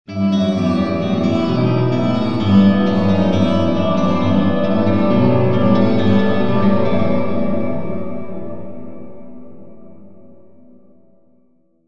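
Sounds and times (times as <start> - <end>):
guitar in cathedral: 0.0 - 11.6.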